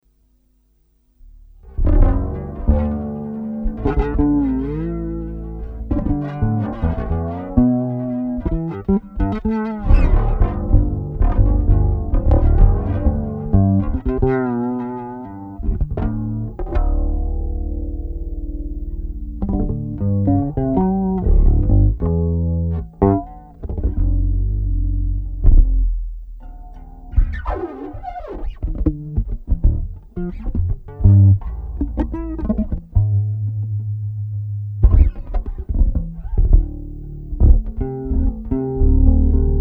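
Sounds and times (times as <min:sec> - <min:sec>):
bass: 0:00.0 - 0:39.5.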